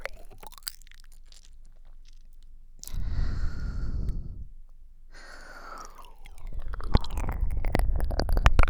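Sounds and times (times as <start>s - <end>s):
slow deep ear licking: 2.8s - 4.5s, 5.1s - 8.6s.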